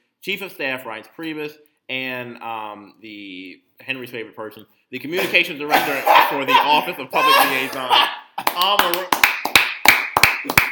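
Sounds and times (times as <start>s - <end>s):
speech: 0.2s - 9.2s
laughter: 5.7s - 8.7s
hand clap: 7.7s - 10.7s.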